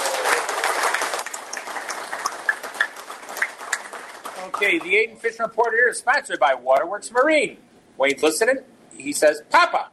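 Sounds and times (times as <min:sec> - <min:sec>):
audience applause: 0:00.0 - 0:05.1
speech: 0:04.6 - 0:09.9.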